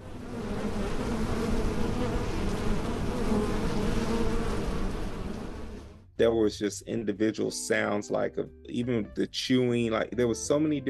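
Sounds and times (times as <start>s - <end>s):
insect swarm buzzing: 0.0s - 6.0s
speech: 6.2s - 10.8s.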